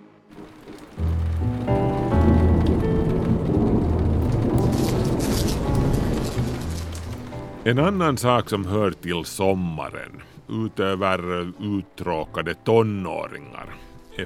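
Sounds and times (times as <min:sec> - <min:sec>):
steady rain: 0:00.0 - 0:11.3
crackling rain patter: 0:00.0 - 0:14.2
speech: 0:07.7 - 0:14.2.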